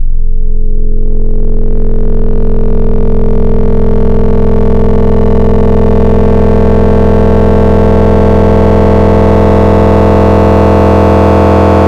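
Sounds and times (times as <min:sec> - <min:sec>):
FM wavetable synth: 0:00.0 - 0:11.8.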